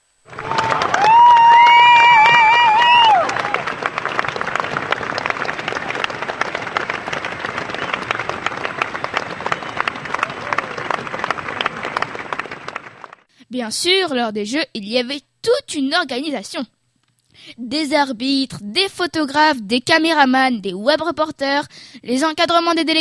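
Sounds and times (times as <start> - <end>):
applause for athletes: 0.2 - 13.3
speech: 13.6 - 16.8, 17.6 - 22.9.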